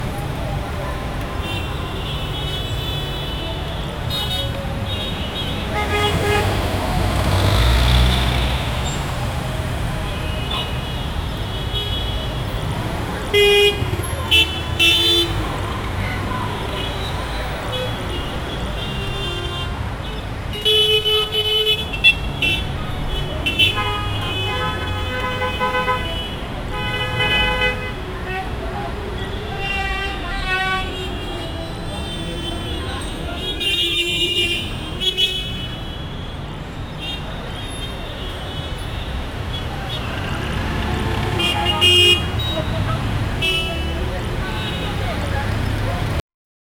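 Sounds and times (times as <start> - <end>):
faint Indian street sound: 0.0 - 46.2.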